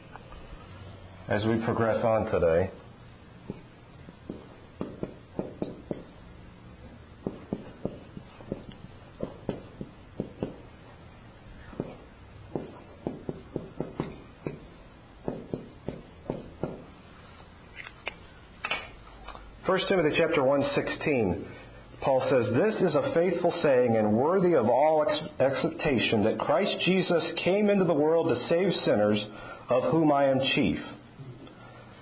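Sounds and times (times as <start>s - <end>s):
scratchy strokes drawing a timeline by hand: 0.0s - 1.5s, 3.5s - 3.7s, 4.3s - 6.3s, 7.2s - 10.6s, 11.8s - 16.8s
speech: 1.3s - 2.8s, 19.9s - 30.9s.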